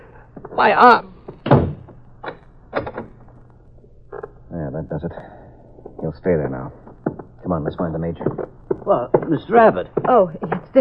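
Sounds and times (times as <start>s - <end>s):
speech: 0.6s - 1.1s, 4.8s - 5.4s, 6.0s - 6.8s, 7.4s - 10.6s
door shutting: 1.4s - 1.9s.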